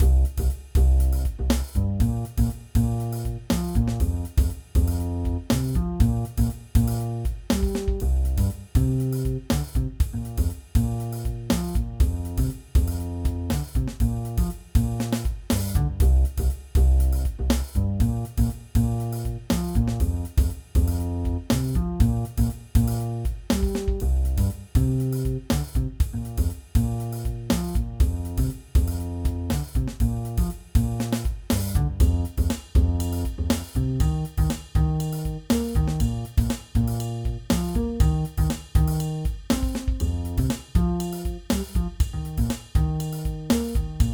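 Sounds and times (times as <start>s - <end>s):
rhythmic background music: 0.0s - 44.1s.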